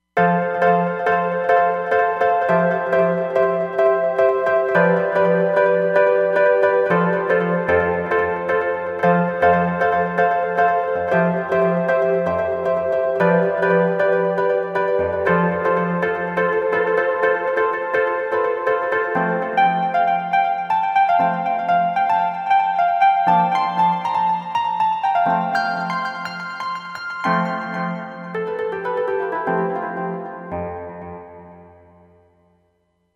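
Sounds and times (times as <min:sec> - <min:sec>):
Roland Fantom XR synthesizer: 0:00.2 - 0:32.1.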